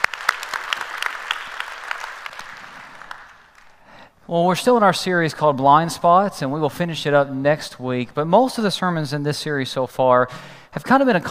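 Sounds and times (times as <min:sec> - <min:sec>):
church congregation clapping to welcome online viewers: 0:00.0 - 0:04.0
speech: 0:04.3 - 0:11.2.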